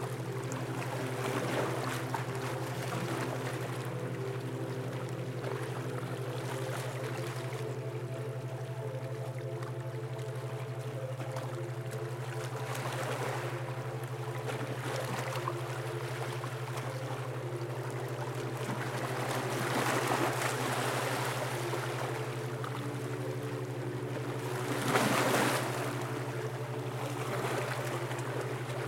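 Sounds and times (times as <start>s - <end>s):
calming ocean waves: 0.0s - 9.0s, 10.2s - 28.8s.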